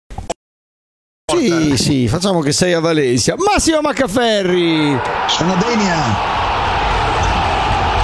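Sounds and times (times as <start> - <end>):
speech: 1.4 - 6.4
applause: 5.3 - 8.0.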